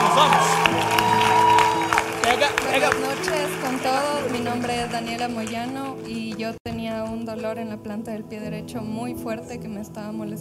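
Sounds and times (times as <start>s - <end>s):
people cheering and shouting: 0.0s - 4.9s
audience applause: 0.0s - 6.6s
speech: 0.2s - 0.7s, 2.8s - 10.3s.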